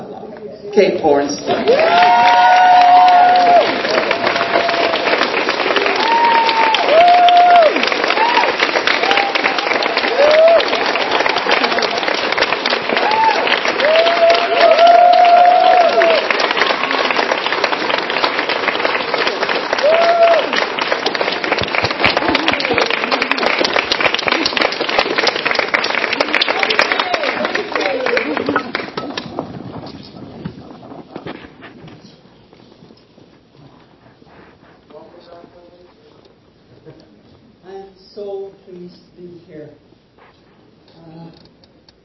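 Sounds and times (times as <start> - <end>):
speech: 0.8 - 2.6
crowd applauding: 1.5 - 31.5
whoops and cheers: 1.6 - 11.9, 12.9 - 17.0, 19.7 - 20.6, 26.6 - 28.0.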